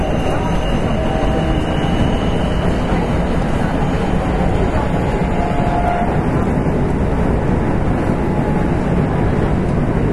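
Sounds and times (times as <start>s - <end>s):
Kintetsu 7000 series train running: 0.0s - 10.1s.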